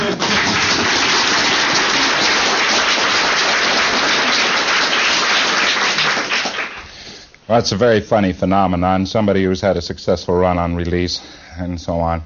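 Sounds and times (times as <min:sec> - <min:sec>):
audience applause: 0:00.0 - 0:06.9
speech: 0:07.5 - 0:12.2.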